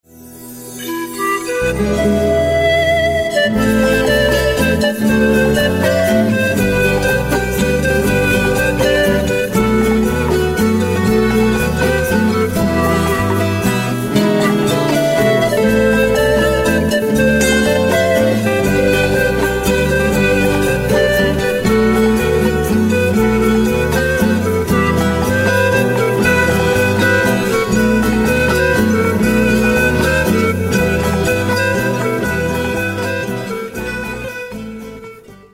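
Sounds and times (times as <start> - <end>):
Andean flute: 0.2 - 35.5.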